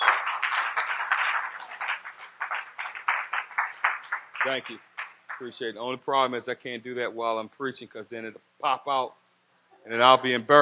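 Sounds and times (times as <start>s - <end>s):
audience hand clapping: 0.0s - 5.6s
speech: 4.4s - 9.2s, 9.8s - 10.6s.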